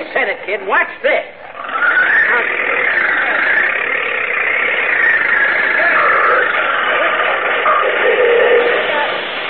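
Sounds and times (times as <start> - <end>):
speech: 0.0 - 1.4
tractor engine straining to pull: 1.4 - 9.4.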